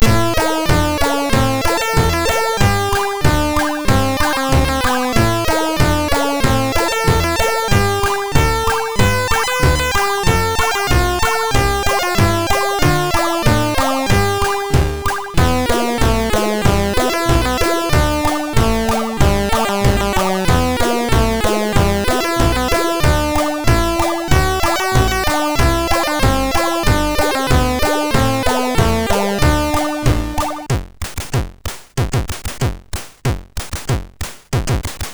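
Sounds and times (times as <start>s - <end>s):
MOS 6581R2 SID chip music: 0.0s - 35.1s.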